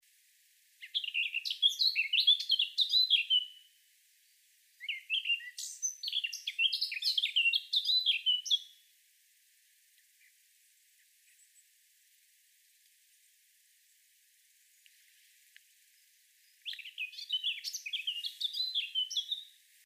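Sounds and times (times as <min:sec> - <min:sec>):
Sylvia atricapilla singing: 0:00.8 - 0:03.6, 0:04.8 - 0:08.8, 0:16.6 - 0:19.6.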